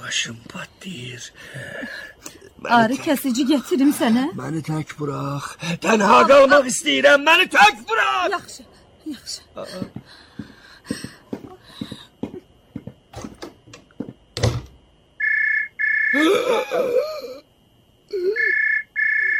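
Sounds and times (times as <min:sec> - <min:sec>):
speech: 0:00.1 - 0:10.2, 0:16.2 - 0:17.2
telephone ringing: 0:15.2 - 0:16.2, 0:18.4 - 0:19.3.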